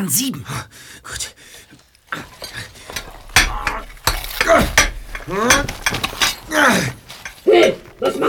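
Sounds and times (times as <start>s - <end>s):
speech: 0.0s - 1.4s, 5.3s - 5.8s
chiseling an air hole with hammer and chisel: 2.3s - 8.2s.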